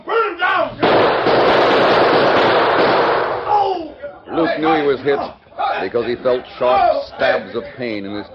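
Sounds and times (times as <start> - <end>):
gunfire from revolvers in a shootout: 0.8 - 3.5
speech: 4.4 - 8.3.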